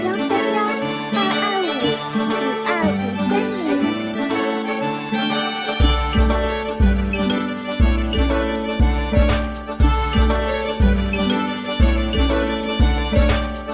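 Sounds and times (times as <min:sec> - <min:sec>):
relaxed cheerful Japanese-style orchestral music: 0:00.0 - 0:13.7.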